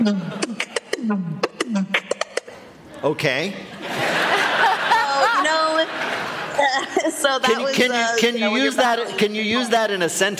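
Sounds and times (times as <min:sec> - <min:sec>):
speech: 0:00.0 - 0:00.4, 0:01.0 - 0:02.0, 0:03.0 - 0:04.0, 0:06.8 - 0:10.3
person vocalizing pip sound effect: 0:00.0 - 0:02.8
laughter: 0:02.0 - 0:07.8.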